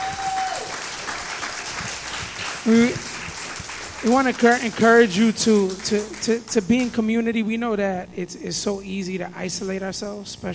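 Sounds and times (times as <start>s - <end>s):
audience hand clapping: 0.0s - 7.1s
speech: 2.6s - 3.1s, 4.0s - 10.5s.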